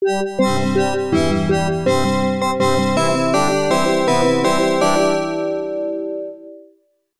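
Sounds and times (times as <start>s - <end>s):
level clear game jingle: 0.0s - 6.2s.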